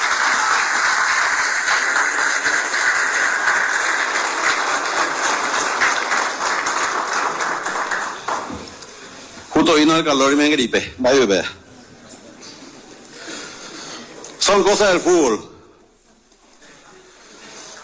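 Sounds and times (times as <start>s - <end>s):
applause for a candidate: 0.0s - 8.8s
speech: 9.7s - 11.6s, 14.6s - 15.5s.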